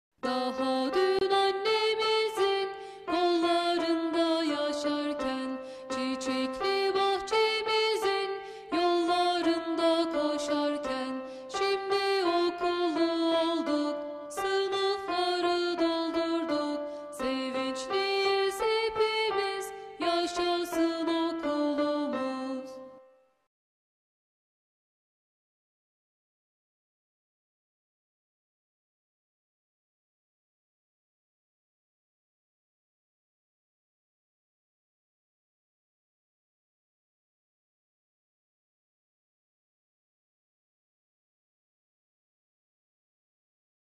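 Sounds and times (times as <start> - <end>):
children's songs: 0.2 - 23.0.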